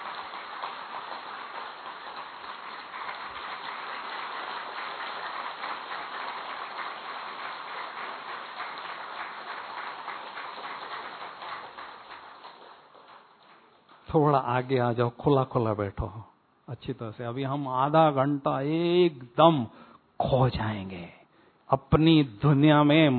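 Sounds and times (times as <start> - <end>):
group clapping hands: 0.0 - 14.4
speech: 14.1 - 23.1.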